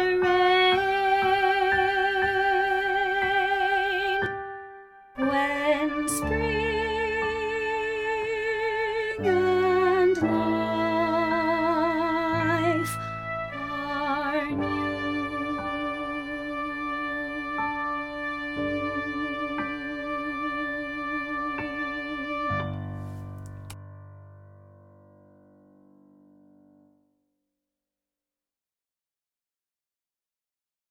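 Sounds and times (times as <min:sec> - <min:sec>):
soprano singing: 0:00.0 - 0:04.4, 0:05.2 - 0:22.7.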